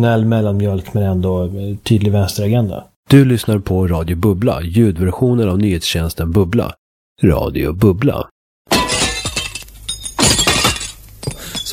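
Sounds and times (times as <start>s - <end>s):
speech: 0.0s - 8.9s
window pane glass shattering: 8.7s - 11.7s
tinkling glass shards: 9.1s - 11.7s.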